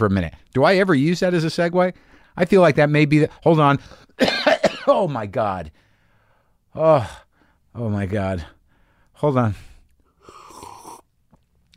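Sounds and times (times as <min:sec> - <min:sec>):
speech: 0:00.0 - 0:05.8, 0:06.8 - 0:08.6, 0:09.2 - 0:09.7
coughing fit: 0:04.2 - 0:05.1.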